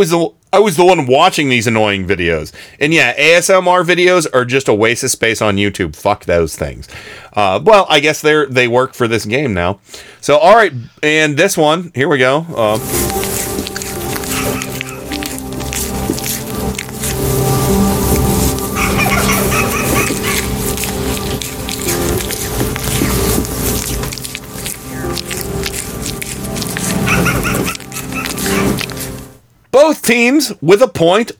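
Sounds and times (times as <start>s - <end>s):
speech: 0.0s - 13.7s, 30.1s - 31.3s
gentle deer licking a man's hand: 12.7s - 29.4s.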